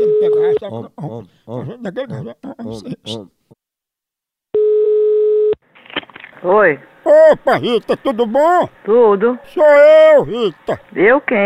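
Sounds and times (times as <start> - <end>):
laughter: 0.0 - 3.4, 7.1 - 8.7, 10.1 - 10.8
speech: 0.6 - 3.4, 6.4 - 11.4
telephone ringback tone: 4.6 - 5.6.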